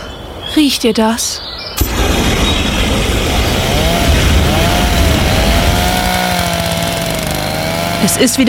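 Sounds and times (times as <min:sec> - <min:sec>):
speech: 0:00.5 - 0:01.5, 0:08.1 - 0:08.4
lawn mower running in gardens: 0:02.0 - 0:08.4
pressure washer running in gardens: 0:02.9 - 0:08.4.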